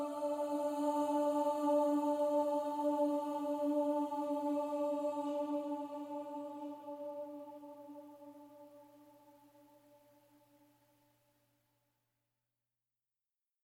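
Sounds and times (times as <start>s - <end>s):
choir singing: 0.0s - 9.9s.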